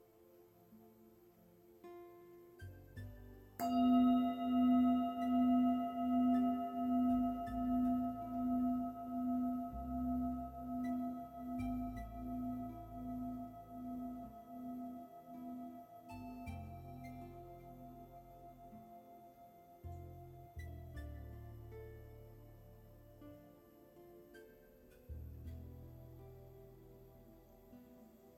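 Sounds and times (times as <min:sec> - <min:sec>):
meditation bell ringing: 0:03.6 - 0:17.9.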